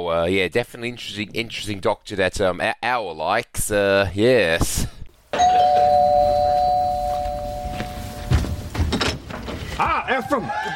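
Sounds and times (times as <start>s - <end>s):
speech: 0.0s - 6.1s, 9.8s - 10.7s
doorbell ringing: 5.4s - 8.7s
soft thumps and rattles: 7.8s - 9.8s.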